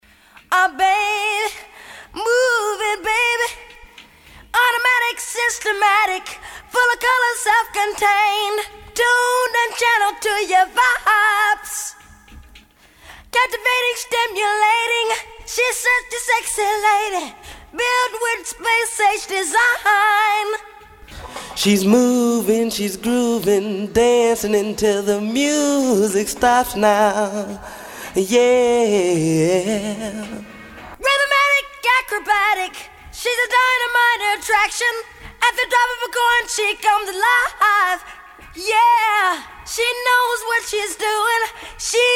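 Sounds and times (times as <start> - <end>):
a cappella singing: 0.5 - 12.4, 13.3 - 42.1.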